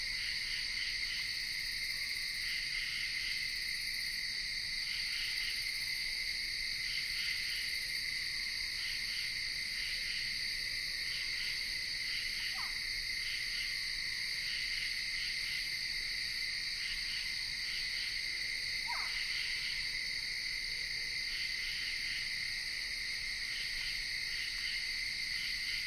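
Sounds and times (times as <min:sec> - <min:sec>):
insects in Ithaca New York: 0:00.0 - 0:25.8
screech owl calling in Ithaca New York: 0:18.9 - 0:19.2.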